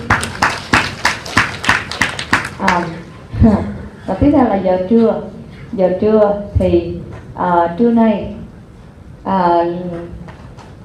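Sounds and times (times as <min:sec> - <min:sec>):
audience applause: 0:00.0 - 0:02.8
speech: 0:02.7 - 0:08.4, 0:09.2 - 0:10.2.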